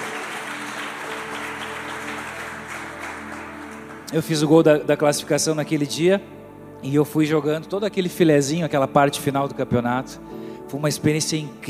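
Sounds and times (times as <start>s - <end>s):
round of applause: 0.0s - 4.5s
speech: 4.1s - 11.6s.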